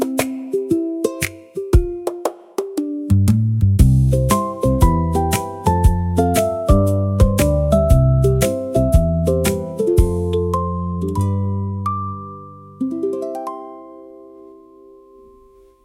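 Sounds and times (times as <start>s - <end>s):
ukulele music: 0.0s - 15.8s.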